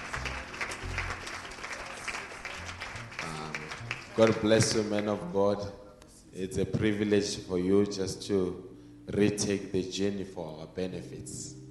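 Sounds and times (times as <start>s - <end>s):
audience applause: 0.0s - 4.6s
speech: 4.2s - 11.6s.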